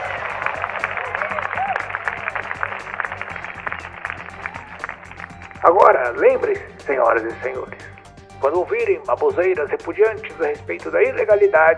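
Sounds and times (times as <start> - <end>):
crowd applauding: 0.0 - 6.4
speech: 5.6 - 11.7.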